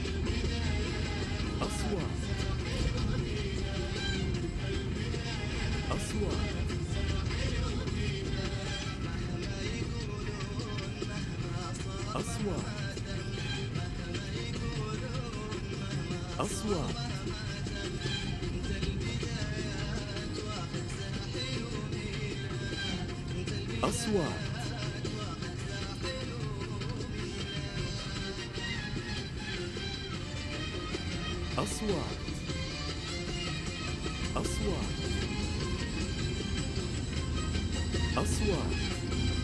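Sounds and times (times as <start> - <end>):
cars travelling on a road: 0.0 - 39.4
radio voice: 1.4 - 3.0, 5.8 - 6.7, 12.1 - 13.0, 16.4 - 17.2, 23.8 - 24.8, 31.5 - 32.4, 34.3 - 35.2, 38.2 - 39.0.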